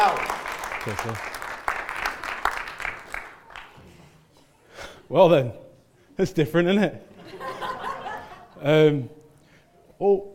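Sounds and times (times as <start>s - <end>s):
crowd clapping: 0.0s - 3.8s
speech: 0.1s - 1.3s, 5.1s - 5.6s, 6.2s - 7.4s, 8.6s - 9.2s, 10.0s - 10.3s
laughter: 7.1s - 8.7s.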